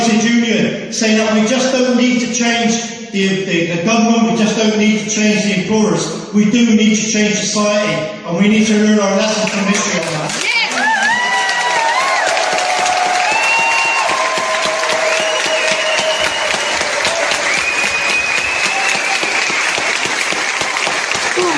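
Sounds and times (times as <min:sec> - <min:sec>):
speech: 0:01.0 - 0:10.6
round of applause at a rally: 0:09.4 - 0:21.5.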